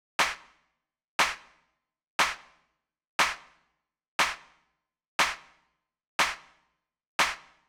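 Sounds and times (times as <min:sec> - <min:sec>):
hand clap: 0:00.2 - 0:00.6, 0:01.2 - 0:01.6, 0:02.2 - 0:02.6, 0:03.2 - 0:03.6, 0:04.2 - 0:04.6, 0:05.2 - 0:05.6, 0:06.2 - 0:06.6, 0:07.2 - 0:07.6.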